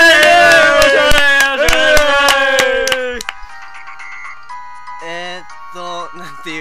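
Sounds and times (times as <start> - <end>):
two people clapping: 0.0 - 3.4.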